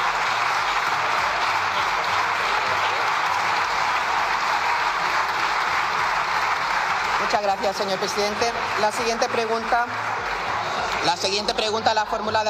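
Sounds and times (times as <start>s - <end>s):
prolonged applause in parliament: 0.0s - 12.4s
speech: 7.3s - 10.1s, 11.0s - 12.4s.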